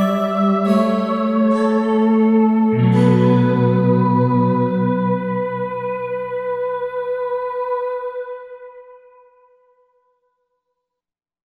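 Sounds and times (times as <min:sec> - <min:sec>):
cold synth voice: 0:00.0 - 0:07.9.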